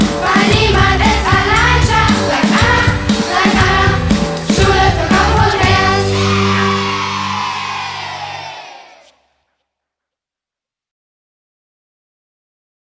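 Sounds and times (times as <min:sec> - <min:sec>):
song: 0:00.0 - 0:09.1.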